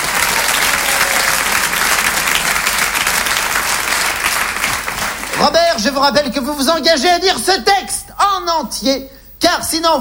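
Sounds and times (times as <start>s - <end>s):
audience applause: 0.0s - 5.8s
speech: 5.4s - 9.9s.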